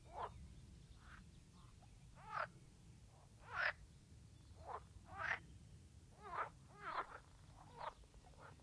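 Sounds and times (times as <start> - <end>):
green frog croaking in rasping pulsed bursts: 2.2 - 2.5, 3.4 - 3.8, 4.6 - 5.4, 6.2 - 8.6.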